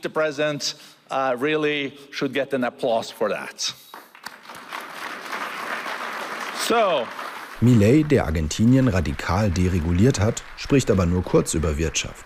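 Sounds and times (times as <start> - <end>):
man speaking emphatically: 0.0 - 3.8, 6.6 - 12.2
speech: 0.0 - 4.0, 6.7 - 12.2
crowd applause: 4.1 - 12.2.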